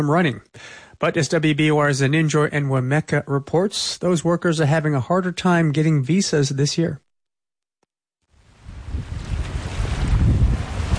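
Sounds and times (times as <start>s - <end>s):
speech: 0.0s - 7.0s
ocean waves on Cape Cod: 8.3s - 10.9s.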